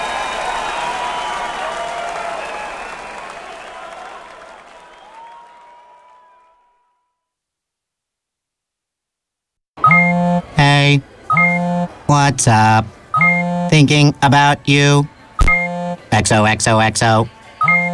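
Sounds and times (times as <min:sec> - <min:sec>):
applause: 0:00.0 - 0:06.8
text message notification beeps: 0:09.8 - 0:12.0, 0:13.2 - 0:14.1, 0:15.4 - 0:16.4, 0:17.6 - 0:17.9
speech: 0:12.1 - 0:15.1, 0:16.1 - 0:17.8.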